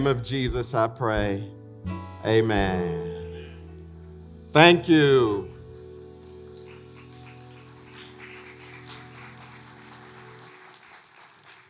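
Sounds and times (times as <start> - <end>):
speech: 0.0 - 3.1, 4.5 - 5.5
audience clapping: 6.5 - 11.6.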